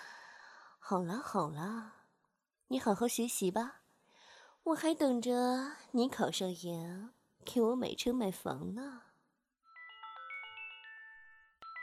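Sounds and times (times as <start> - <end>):
speech: 0.9 - 2.0, 2.7 - 3.8, 4.6 - 9.1
alarm clock ringing with an electronic chime melody: 9.7 - 11.8.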